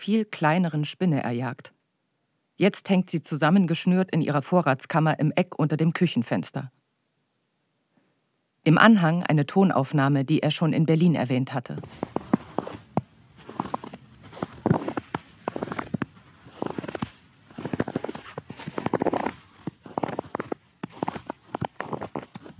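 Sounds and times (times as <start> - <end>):
speech: 0.0 - 1.8, 2.6 - 6.8, 8.6 - 12.3
footsteps trudging through snow at night: 11.8 - 22.5.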